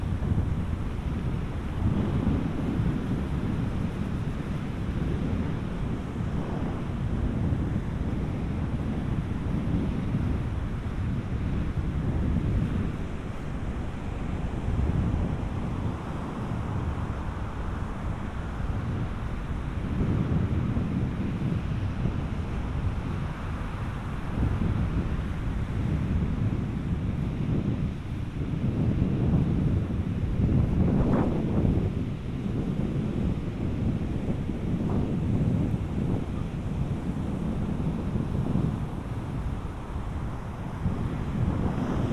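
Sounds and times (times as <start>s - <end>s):
heavy wind buffeting on a beach near Vik, Iceland: 0.0s - 42.1s
wave wash: 34.1s - 42.1s.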